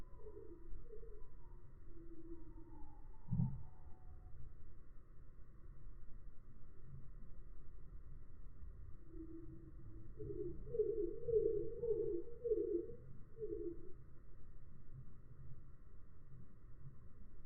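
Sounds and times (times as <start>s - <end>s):
faint background hum: 0.0s - 17.4s
Eurasian bullfinch calling: 10.2s - 13.9s.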